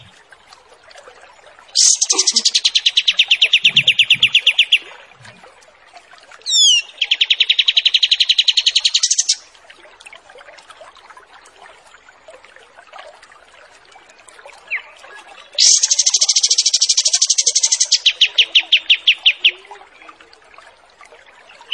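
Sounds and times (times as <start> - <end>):
wild pied triller song with buzzy trills, sharp note and short whistle: 1.8 - 4.8, 6.5 - 9.4, 15.6 - 19.5.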